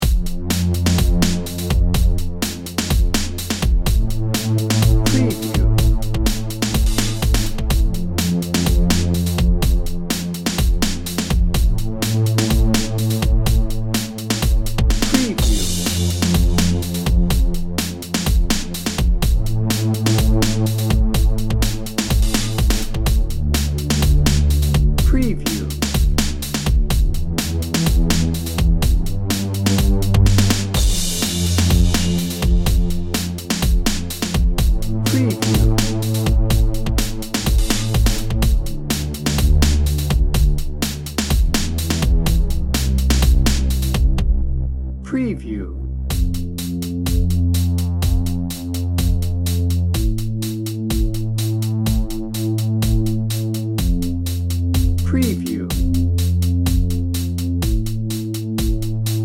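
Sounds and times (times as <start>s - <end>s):
drum and bass music: 0.0s - 59.2s.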